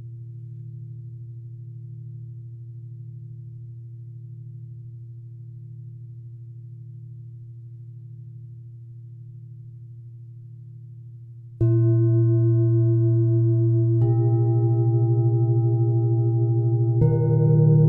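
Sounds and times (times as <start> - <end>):
singing bowl humming: 11.6 - 17.8.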